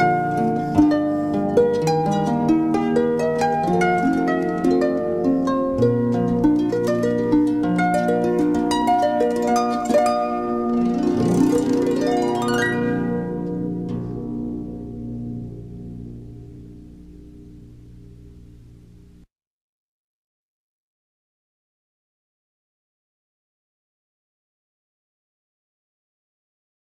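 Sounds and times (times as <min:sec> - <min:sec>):
music piece: 0:00.0 - 0:19.3.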